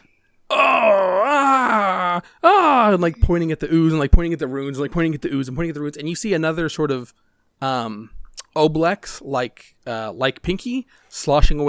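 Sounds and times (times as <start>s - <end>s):
person screaming: 0.5s - 3.0s
speech: 2.9s - 11.6s.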